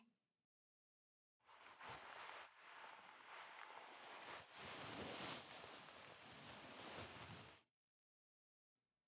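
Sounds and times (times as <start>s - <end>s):
Halloween ASMR ear cleaning sounds: 1.5s - 7.5s.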